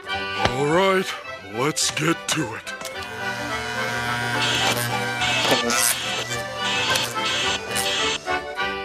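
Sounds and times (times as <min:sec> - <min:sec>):
speech: 0:00.6 - 0:02.8
steady tonal background: 0:02.8 - 0:08.6
cartoon shaving sound: 0:03.1 - 0:08.4.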